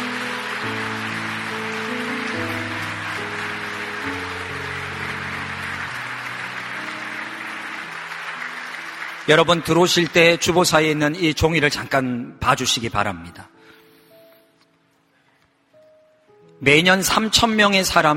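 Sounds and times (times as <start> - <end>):
audience applause: 0.0 - 11.0
speech: 9.3 - 13.5, 16.6 - 18.1.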